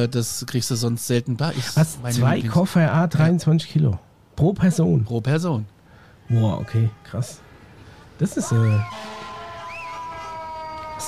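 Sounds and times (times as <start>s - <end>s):
speech: 0.0s - 5.7s, 6.3s - 7.4s, 8.2s - 9.1s
traffic and engine noise: 0.0s - 11.0s
fire engine siren: 8.6s - 10.4s.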